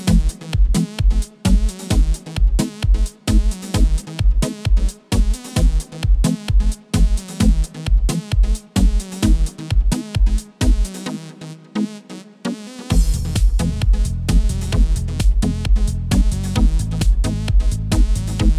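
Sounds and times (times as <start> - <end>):
aerobic dance music at 432 Hz and 131 BPM: 0.0 - 18.5.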